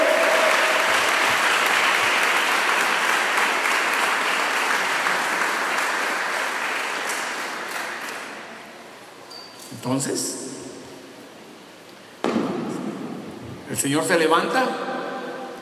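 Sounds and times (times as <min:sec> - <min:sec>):
audience applause: 0:00.0 - 0:08.4
speech: 0:09.8 - 0:10.4, 0:13.8 - 0:14.9.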